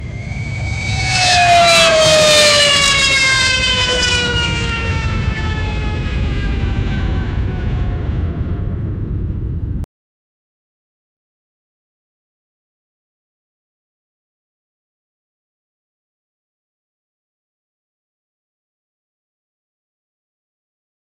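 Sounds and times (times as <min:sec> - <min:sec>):
airplane engine shutting down: 0:00.0 - 0:09.9.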